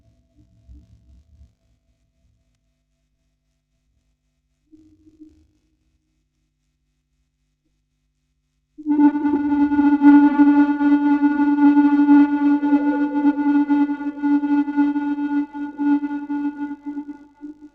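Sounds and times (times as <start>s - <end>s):
vocoder recording: 8.9s - 17.7s.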